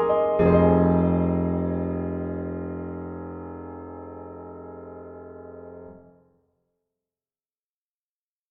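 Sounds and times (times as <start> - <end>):
piano: 0.0 - 6.2.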